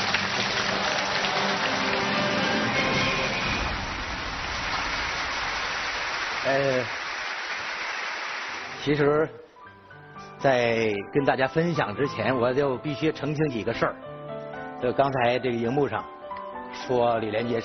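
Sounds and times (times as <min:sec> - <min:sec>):
crowd applauding: 0:00.0 - 0:08.9
speech: 0:06.5 - 0:07.0, 0:08.8 - 0:09.4, 0:10.4 - 0:14.1, 0:14.8 - 0:17.6.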